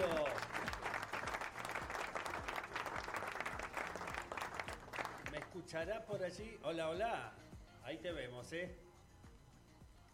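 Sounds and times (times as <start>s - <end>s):
audience ovation applause: 0.0s - 5.5s
speech: 5.6s - 8.9s.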